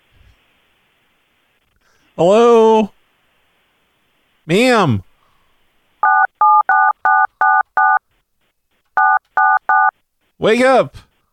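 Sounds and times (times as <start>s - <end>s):
speech: 2.2s - 3.0s, 4.5s - 5.1s, 10.4s - 11.1s
telephone touch tones: 6.0s - 8.0s, 9.0s - 9.9s.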